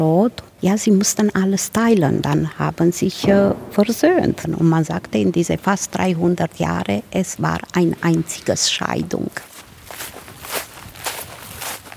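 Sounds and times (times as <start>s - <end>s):
speech: 0.0s - 10.1s
footsteps walking up a hill to a hiking trail in Birtan: 9.3s - 11.9s.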